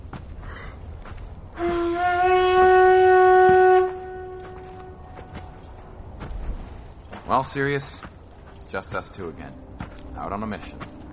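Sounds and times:
conch shell blown as a signal: 0:01.6 - 0:05.6
speech: 0:07.4 - 0:08.1, 0:08.7 - 0:10.9.

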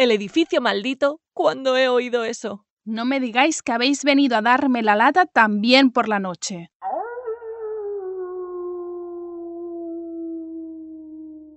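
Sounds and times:
speech: 0:00.0 - 0:06.7
wolf howling at night: 0:06.8 - 0:11.5.

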